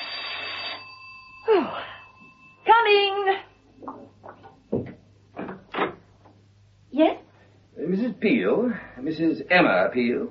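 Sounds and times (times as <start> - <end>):
buzzy metallic doorbell ringing: 0.0 - 3.6
faint steady hum: 0.0 - 10.2
speech: 8.2 - 10.2.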